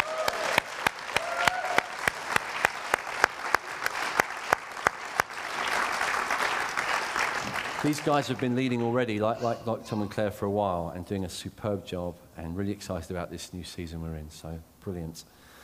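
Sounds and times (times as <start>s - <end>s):
audience applause: 0.0s - 9.0s
speech: 7.8s - 15.4s.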